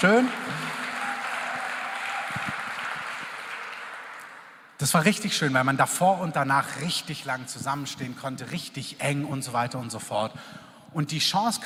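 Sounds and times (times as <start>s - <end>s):
speech: 0.0s - 0.6s, 4.8s - 11.6s
audience applauding: 0.0s - 4.7s.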